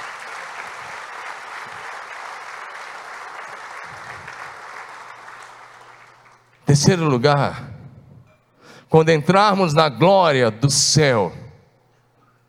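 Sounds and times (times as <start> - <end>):
audience applauding: 0.0 - 6.6
speech: 6.8 - 7.7, 8.9 - 11.4.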